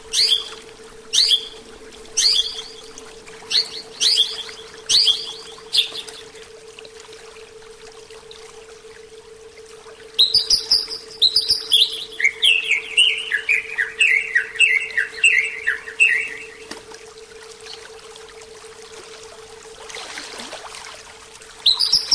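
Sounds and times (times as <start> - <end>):
Oriental magpie-robin singing a soft rambling series of whistled notes: 0.1 - 1.6, 2.2 - 2.9, 3.5 - 6.3, 10.2 - 16.7, 21.6 - 22.1.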